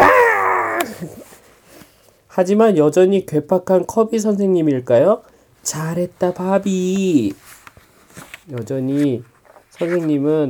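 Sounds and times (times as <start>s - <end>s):
bear roaring: 0.0s - 1.2s
speech: 2.4s - 7.5s, 8.5s - 10.4s.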